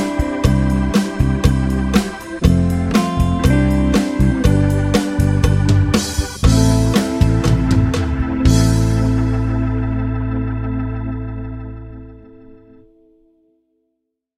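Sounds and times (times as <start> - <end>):
bass guitar ballad rhythm playthrough: 0.0 - 12.8.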